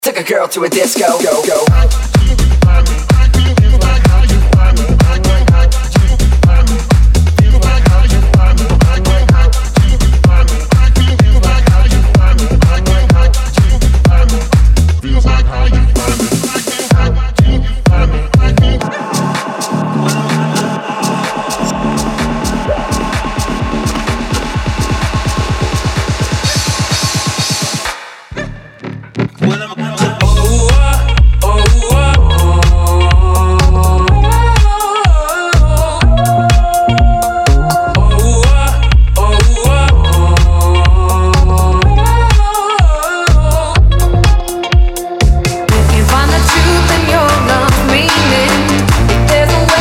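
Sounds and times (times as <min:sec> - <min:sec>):
EDM medley: 0:00.0 - 0:49.8.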